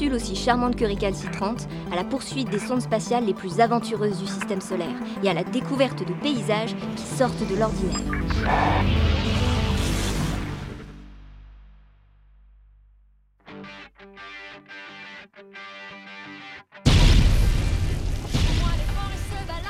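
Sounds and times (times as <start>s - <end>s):
speech: 0.0s - 9.2s
explosion aboard an animated space capsule: 8.3s - 11.9s, 16.9s - 19.6s.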